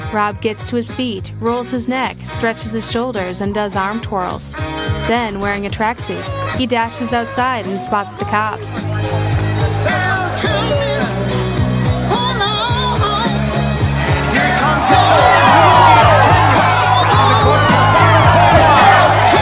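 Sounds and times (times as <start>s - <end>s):
speech: 0.1s - 9.4s
crowd cheering and whooping at a race: 7.4s - 19.3s.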